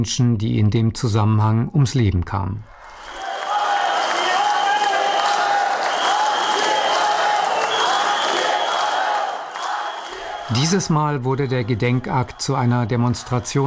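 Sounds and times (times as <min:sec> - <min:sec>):
speech: 0:00.0 - 0:02.8, 0:10.5 - 0:13.6
crowd whistling: 0:02.7 - 0:13.6.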